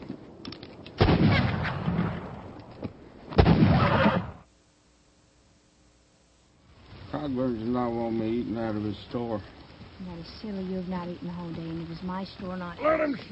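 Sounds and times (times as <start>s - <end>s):
gunshots fired at cornbread on the prairie: 1.0s - 2.5s, 3.3s - 4.5s
speech: 7.5s - 13.3s.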